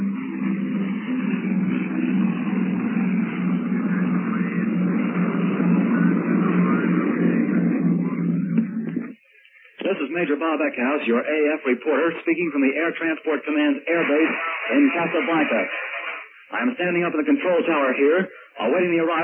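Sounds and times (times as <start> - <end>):
C-54 airliner piston engines roaring on takeoff: 0.0 - 9.2
speech: 10.5 - 15.9, 16.6 - 19.2.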